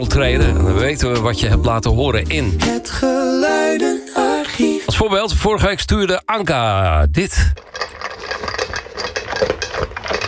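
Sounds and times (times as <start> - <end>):
speech: 0.0 - 4.0, 5.0 - 7.7, 9.4 - 9.9
dogs eating dry kibble: 7.6 - 10.2.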